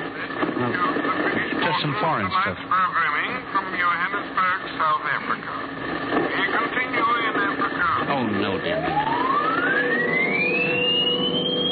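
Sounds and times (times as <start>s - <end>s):
noisy wavering band of warbling radio tones: 0.0s - 11.6s
speech: 1.8s - 5.4s
radio transmission tone gliding upward on a receiving set: 8.7s - 11.6s.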